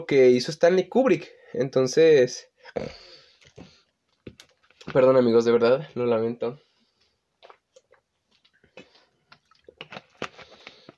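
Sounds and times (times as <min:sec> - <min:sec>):
speech: 0:00.0 - 0:03.7, 0:04.9 - 0:06.7
person drinking water: 0:02.6 - 0:04.9, 0:07.3 - 0:10.9.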